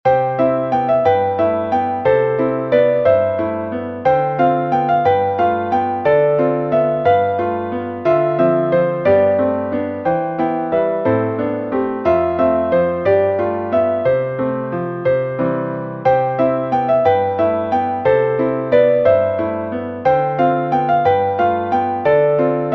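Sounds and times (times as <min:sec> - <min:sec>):
waltz music: 0:00.1 - 0:22.7.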